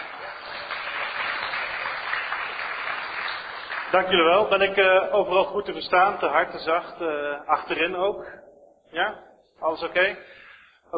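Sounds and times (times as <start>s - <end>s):
audience applause: 0.0s - 4.5s
speech: 3.9s - 10.9s.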